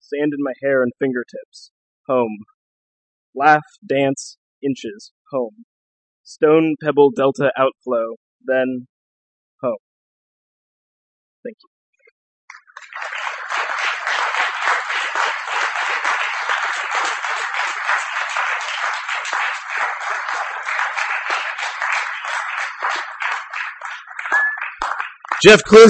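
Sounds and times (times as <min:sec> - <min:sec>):
speech: 0:00.1 - 0:02.5, 0:03.4 - 0:05.7, 0:06.3 - 0:08.9, 0:09.6 - 0:09.8, 0:11.4 - 0:11.7, 0:25.4 - 0:25.8
audience applause after a poetry reading: 0:12.5 - 0:25.8.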